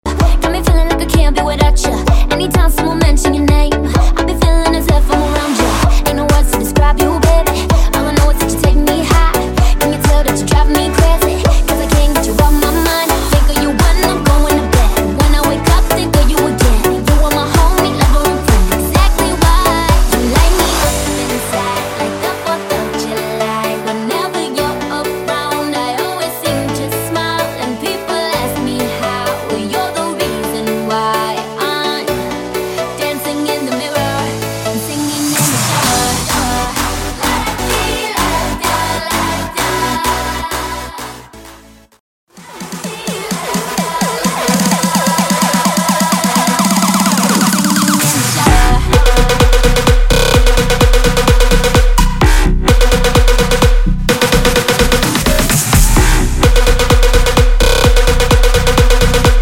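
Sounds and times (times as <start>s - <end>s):
club banger remix: 0.0s - 59.4s.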